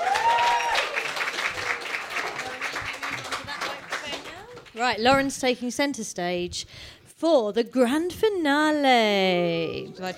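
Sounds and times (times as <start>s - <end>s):
audience applause: 0.0s - 4.8s
speech: 4.8s - 10.1s.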